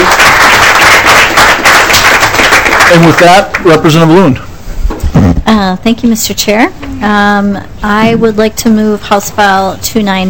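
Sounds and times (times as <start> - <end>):
applause in a state legislative committee hearing room: 0.0 - 3.8
speech: 2.9 - 4.5, 5.2 - 10.2.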